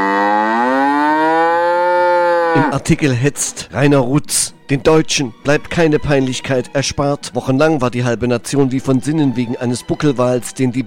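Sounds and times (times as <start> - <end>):
cow mooing: 0.0 - 2.8
speech: 2.6 - 10.8.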